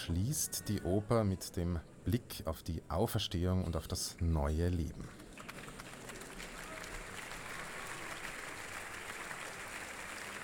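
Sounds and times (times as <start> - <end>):
speech: 0.0 - 5.2
audience applause after an opera performance: 5.1 - 10.4.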